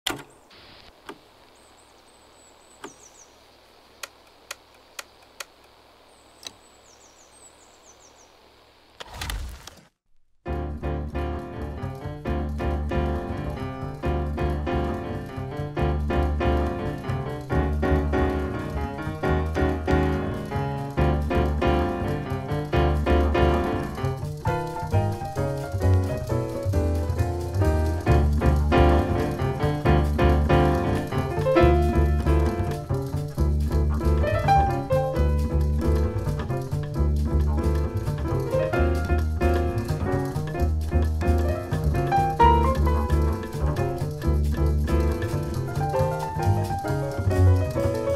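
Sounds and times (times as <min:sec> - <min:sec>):
European jazz-dance music: 0:10.5 - 0:48.1.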